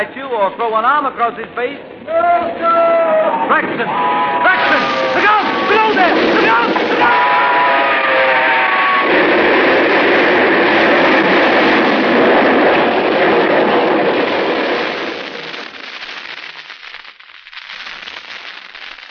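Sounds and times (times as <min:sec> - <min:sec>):
speech: 0:00.0 - 0:07.4
train whistle: 0:02.1 - 0:09.2
train engine rushing along the track: 0:02.2 - 0:14.2.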